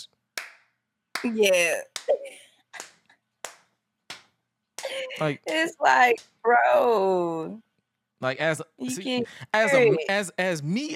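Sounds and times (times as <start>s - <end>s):
hand claps imitating loud smacks: 0.3s - 6.4s
speech: 1.2s - 2.4s, 4.9s - 10.9s.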